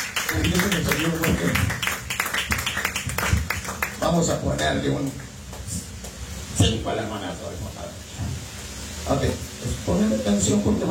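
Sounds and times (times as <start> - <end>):
audience clapping loudly: 0.0 - 6.2
speech: 0.3 - 1.5, 4.1 - 5.3, 6.6 - 8.0, 9.1 - 10.8.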